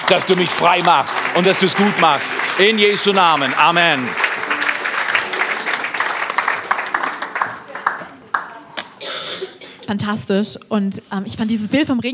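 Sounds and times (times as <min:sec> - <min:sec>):
audience applauding: 0:00.0 - 0:08.8
speech: 0:00.1 - 0:04.3, 0:09.9 - 0:12.1
coughing: 0:09.0 - 0:10.0.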